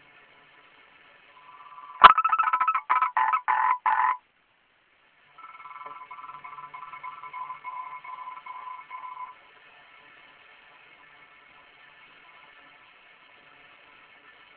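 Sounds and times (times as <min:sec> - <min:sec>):
frog calling in rapid pulsed croaks: 0:01.4 - 0:04.2, 0:05.4 - 0:09.2.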